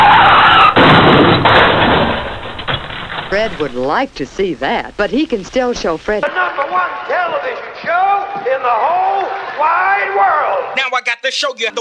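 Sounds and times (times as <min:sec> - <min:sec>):
car tires squealing in a skid: 0:00.0 - 0:01.0
heavy crashing knocks: 0:00.5 - 0:04.0
speech: 0:03.4 - 0:11.7.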